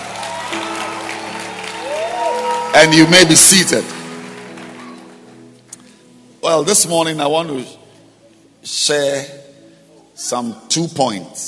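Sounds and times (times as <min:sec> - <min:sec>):
audience clapping hands: 0:00.0 - 0:05.9
speech: 0:02.8 - 0:04.0, 0:06.5 - 0:07.8, 0:08.6 - 0:09.5, 0:10.2 - 0:11.4.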